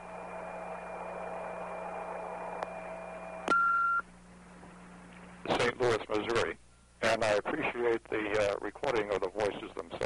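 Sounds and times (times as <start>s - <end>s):
steady line hiss and hum: 0.0s - 10.0s
recording beep tone signal: 3.5s - 4.0s
speech: 7.4s - 10.0s.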